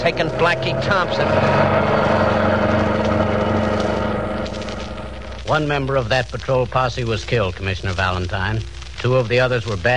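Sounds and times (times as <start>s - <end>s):
getaway car engine revving as it drives off: 0.0s - 6.1s
speech: 0.1s - 2.2s, 5.5s - 9.9s.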